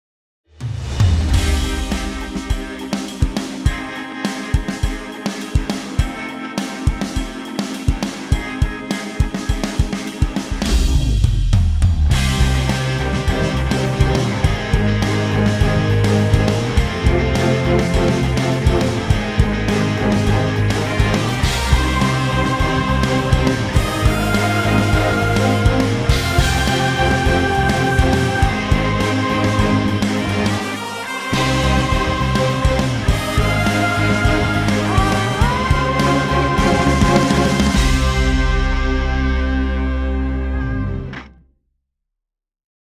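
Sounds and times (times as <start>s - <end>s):
TV theme song: 0.6s - 41.4s.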